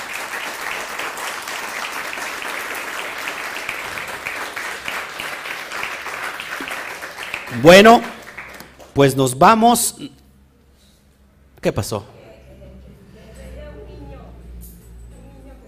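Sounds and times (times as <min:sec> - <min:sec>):
crowd applause: 0:00.0 - 0:09.0
speech: 0:07.5 - 0:08.1, 0:09.0 - 0:10.2, 0:11.6 - 0:12.1.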